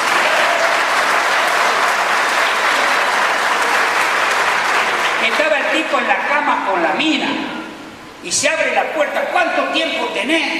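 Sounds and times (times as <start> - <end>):
audience applause: 0.0 - 5.6
speech: 5.8 - 7.6, 8.2 - 10.5.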